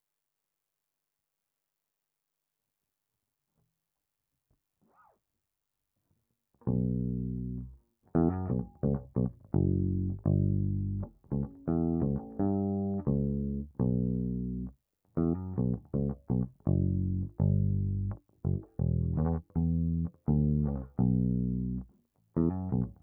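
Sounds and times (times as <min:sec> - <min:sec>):
bass guitar recorded by direct input: 0:06.6 - 0:23.0.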